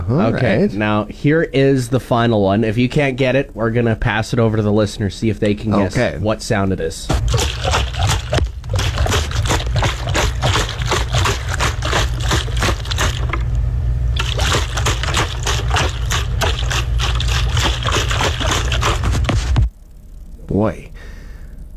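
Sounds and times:
speech: 0.1s - 8.1s, 20.6s - 20.9s
water sloshing in a pitcher: 7.1s - 13.6s, 14.2s - 19.7s.

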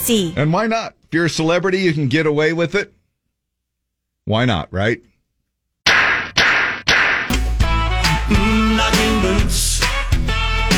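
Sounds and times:
speech: 0.0s - 3.0s, 4.3s - 5.1s, 9.2s - 9.8s
loud sharp face slaps: 5.9s - 7.4s
music: 7.3s - 10.7s.

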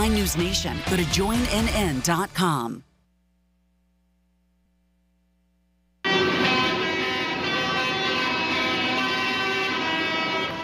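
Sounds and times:
speech: 0.0s - 2.9s
tractor horns blaring at farmers' protest: 6.1s - 10.6s.

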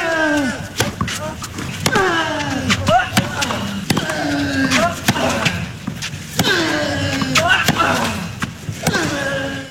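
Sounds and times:
tennis player Rafael Nadal grunting while hitting: 0.0s - 9.7s
tennis racket strikes: 0.8s - 1.2s, 1.8s - 2.1s, 2.7s - 9.0s.

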